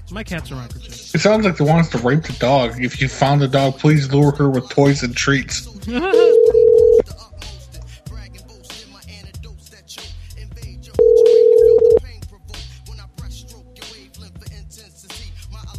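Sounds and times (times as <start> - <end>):
music: 0.0 - 15.7
speech: 0.1 - 6.6
telephone call ringing tone: 6.1 - 7.0, 11.0 - 12.0.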